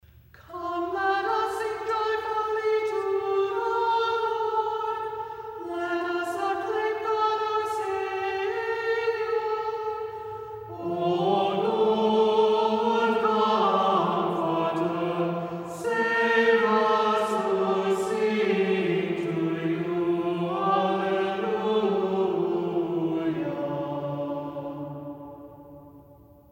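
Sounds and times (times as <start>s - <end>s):
third antiphon chant: 0.4s - 26.5s.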